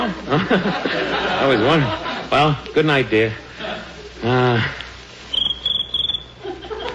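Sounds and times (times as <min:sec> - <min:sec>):
laughter: 0:00.0 - 0:04.8, 0:06.4 - 0:06.9
speech: 0:00.1 - 0:04.8
cricket chirping by rubbing legs: 0:05.3 - 0:06.4.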